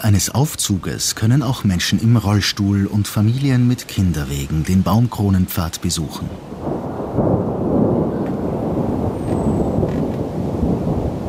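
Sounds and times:
speech: 0:00.0 - 0:07.3
thunder from an approaching thunderstorm: 0:06.5 - 0:11.2.

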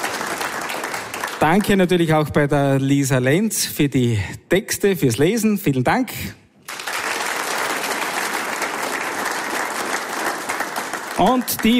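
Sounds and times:
audience applause: 0:00.0 - 0:02.0, 0:06.7 - 0:11.7
speech: 0:01.4 - 0:06.4, 0:11.2 - 0:11.7.

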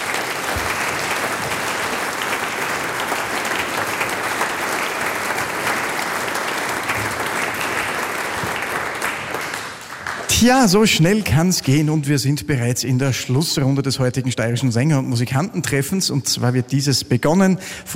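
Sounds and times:
audience applause: 0:00.0 - 0:11.1
speech: 0:10.4 - 0:17.9.

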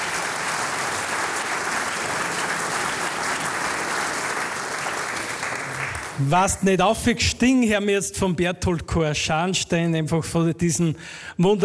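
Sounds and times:
audience applause: 0:00.0 - 0:06.4
speech: 0:06.2 - 0:11.6.

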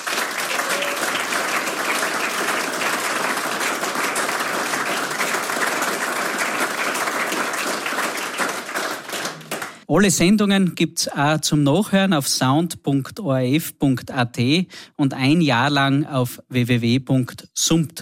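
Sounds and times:
audience applause: 0:00.0 - 0:09.8
speech: 0:09.9 - 0:18.0.

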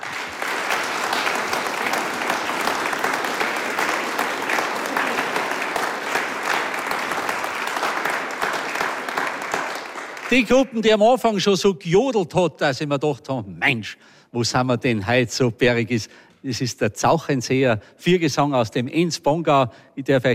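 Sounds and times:
audience applause: 0:00.0 - 0:10.8
speech: 0:10.3 - 0:20.3.

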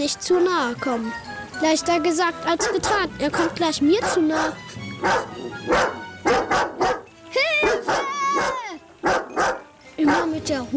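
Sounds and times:
speech: 0:00.0 - 0:06.7, 0:10.4 - 0:10.7
dog barking: 0:00.3 - 0:00.6, 0:02.6 - 0:10.4.

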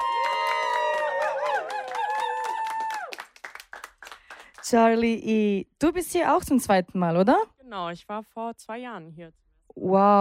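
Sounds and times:
audience cheering: 0:00.0 - 0:03.5
audience applause: 0:00.0 - 0:04.7
speech: 0:04.7 - 0:10.1.

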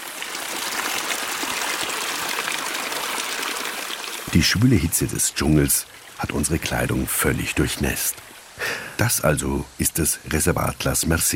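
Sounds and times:
small waterfall pouring from rock face: 0:00.0 - 0:09.2
speech: 0:04.3 - 0:11.3.

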